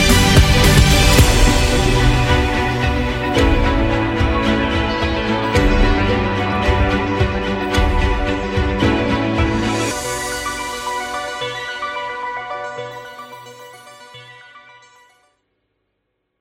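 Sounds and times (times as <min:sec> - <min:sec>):
epic rock music: 0:00.0 - 0:12.6.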